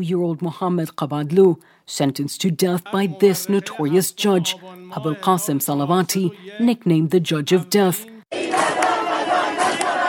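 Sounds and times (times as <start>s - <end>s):
speech: 0.0s - 8.6s
large crowd chanting outside a prison: 2.8s - 6.8s, 7.7s - 10.0s.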